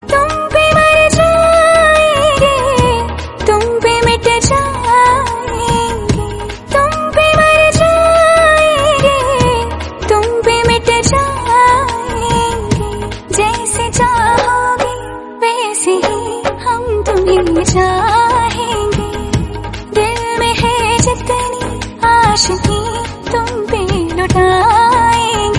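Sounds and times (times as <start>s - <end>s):
Hindi song: 0.0s - 25.5s.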